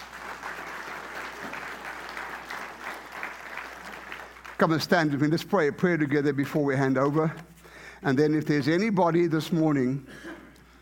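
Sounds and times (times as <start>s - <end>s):
audience clapping: 0.0s - 6.0s
speech: 4.6s - 10.3s.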